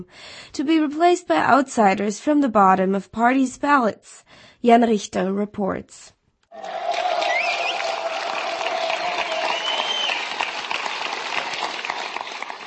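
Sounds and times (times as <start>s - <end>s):
speech: 0.0s - 7.0s
crowd cheering and clapping at party headquarters: 6.5s - 12.6s
sustained shout: 6.6s - 10.1s
sharp whistles: 7.3s - 7.9s, 9.2s - 10.4s.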